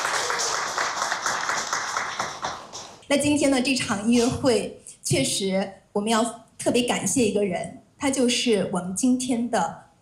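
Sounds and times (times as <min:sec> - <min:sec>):
audience applause: 0:00.0 - 0:03.0
speech: 0:03.1 - 0:09.8.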